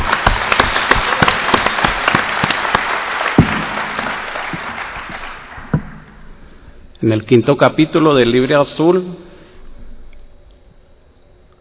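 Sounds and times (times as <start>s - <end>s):
audience applauding itself at a gathering: 0.0s - 5.8s
speech: 7.0s - 9.2s.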